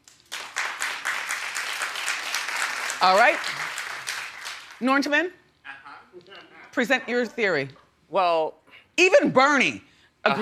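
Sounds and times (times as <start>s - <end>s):
audience applause: 0.0s - 4.8s
speech: 3.0s - 3.6s, 4.8s - 5.4s, 6.2s - 10.3s.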